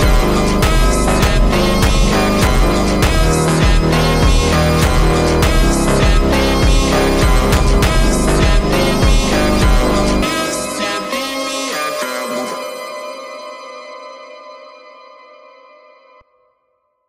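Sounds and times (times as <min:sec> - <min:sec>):
slowed funk remix with reverb: 0:00.0 - 0:12.8.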